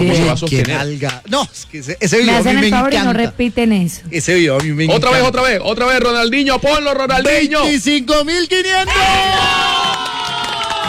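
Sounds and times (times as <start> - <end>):
speech: 0.0 - 9.8
crowd cheering and shouting: 8.6 - 10.8.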